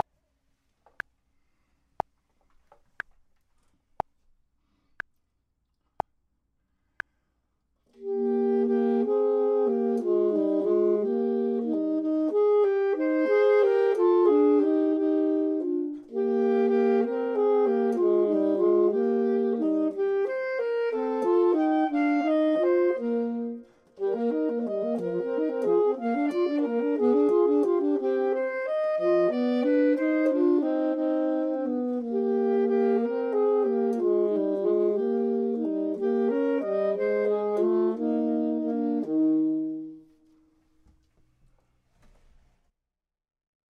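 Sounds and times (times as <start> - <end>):
saxophone: 7.9 - 40.5
clarinet: 7.9 - 40.8.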